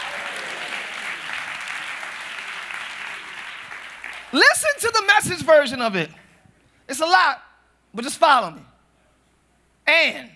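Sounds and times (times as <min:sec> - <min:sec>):
audience clapping hands: 0:00.0 - 0:04.7
speech: 0:04.3 - 0:06.2, 0:06.9 - 0:08.7, 0:09.9 - 0:10.3.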